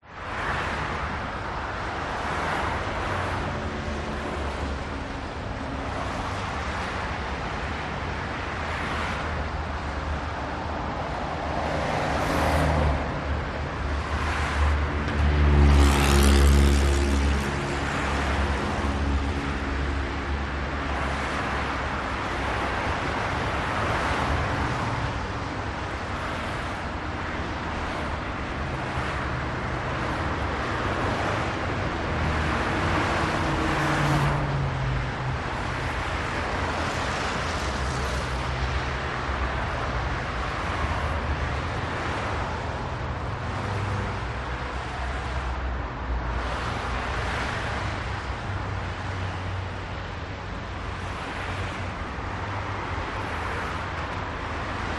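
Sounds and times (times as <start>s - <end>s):
city traffic: 0.0s - 54.9s.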